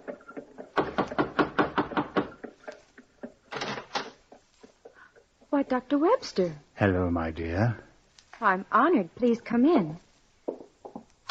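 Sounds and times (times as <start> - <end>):
knocking on a door: 0.7 - 2.4, 10.5 - 11.0
speech: 5.6 - 10.1.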